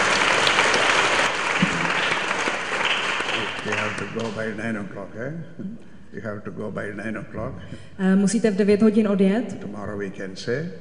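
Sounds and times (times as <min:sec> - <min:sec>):
audience applause: 0:00.0 - 0:04.6
speech: 0:04.2 - 0:10.7.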